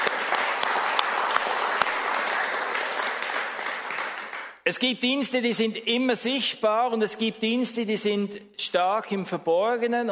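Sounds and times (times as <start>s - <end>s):
audience applause: 0.0s - 4.6s
speech: 4.7s - 10.0s.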